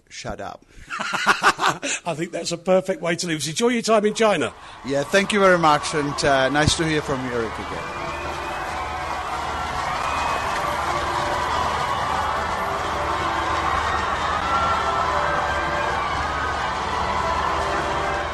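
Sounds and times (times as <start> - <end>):
speech: 0.1 - 8.0
laughter: 1.0 - 2.0
crowd cheering: 3.9 - 18.3.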